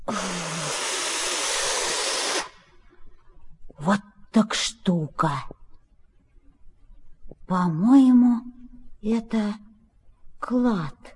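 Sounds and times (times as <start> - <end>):
loud forceful hissing exhale: 0.1 - 2.6
speech: 5.1 - 5.6, 7.5 - 9.6, 10.4 - 11.1.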